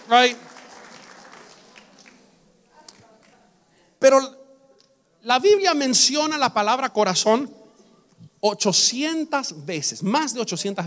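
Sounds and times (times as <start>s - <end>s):
audience applause: 0.0s - 2.3s
speech: 0.1s - 0.5s, 4.0s - 4.4s, 5.2s - 7.6s, 8.4s - 10.8s.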